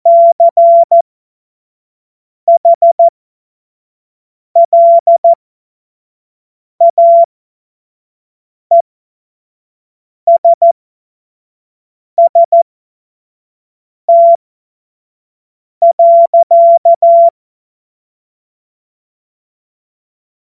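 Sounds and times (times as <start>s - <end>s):
CW Morse code beeps: 0.1s - 1.0s, 2.5s - 3.1s, 4.6s - 5.4s, 6.8s - 7.3s, 10.3s - 10.8s, 12.2s - 12.6s, 14.1s - 14.4s, 15.8s - 17.3s.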